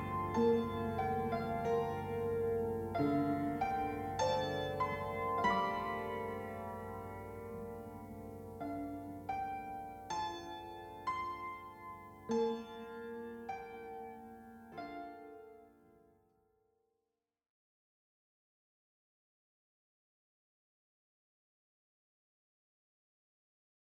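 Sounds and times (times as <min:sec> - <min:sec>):
instrumental music: 0:00.0 - 0:16.2.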